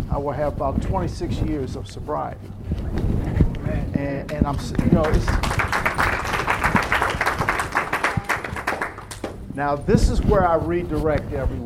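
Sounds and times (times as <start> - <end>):
speech: 0.2 - 5.9, 9.6 - 11.6
audience applause: 4.8 - 9.4.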